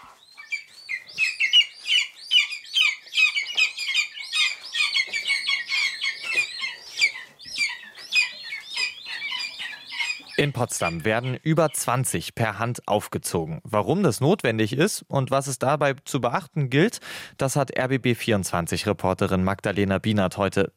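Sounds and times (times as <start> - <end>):
hungry lesser spotted eagle chicks calling: 0.0 - 12.0
speech: 10.4 - 20.7.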